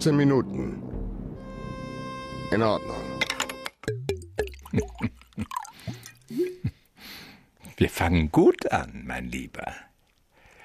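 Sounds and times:
speech: 0:00.0 - 0:00.9, 0:02.5 - 0:03.2, 0:04.7 - 0:05.5, 0:07.8 - 0:09.9
drink pouring from a bottle into a glass: 0:04.4 - 0:06.4.

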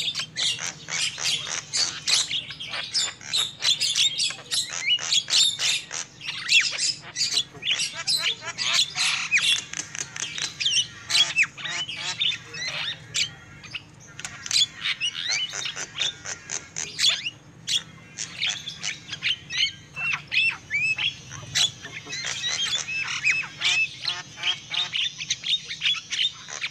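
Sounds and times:
lovebirds chattering with squeaks and screeches: 0:00.0 - 0:26.6.

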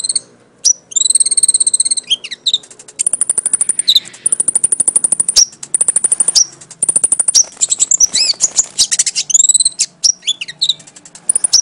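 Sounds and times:
Oriental magpie-robin giving high chips and whistles: 0:00.0 - 0:11.6.

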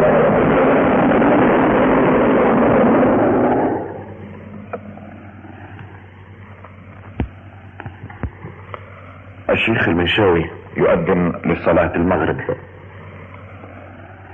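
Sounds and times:
iftar cannon fired to mark breaking the Ramadan fast: 0:00.0 - 0:04.8
speech: 0:09.6 - 0:12.8.

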